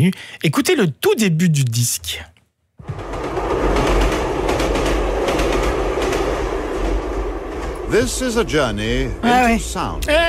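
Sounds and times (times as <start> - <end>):
speech: 0.0 - 4.0, 7.9 - 10.2
train wheels clickety-clack over the track from a sound effects record: 2.8 - 10.1.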